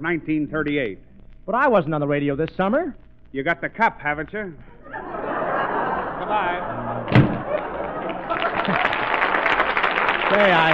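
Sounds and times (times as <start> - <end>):
speech: 0.0 - 5.1, 6.2 - 7.3, 10.3 - 10.7
laughter: 4.8 - 10.7
door slamming in a 1938 radio comedy show: 7.0 - 7.6.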